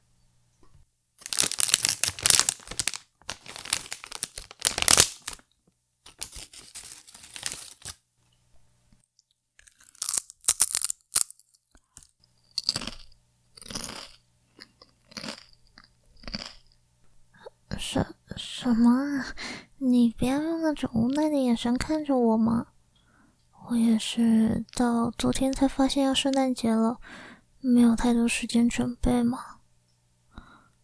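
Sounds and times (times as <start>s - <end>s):
crisp crunching and chewing of potato chips: 1.2s - 5.5s, 9.6s - 16.8s
bag of plain potato chips crinkling and tearing open: 1.2s - 8.0s, 9.6s - 14.2s
speech: 18.7s - 22.7s, 23.7s - 29.5s.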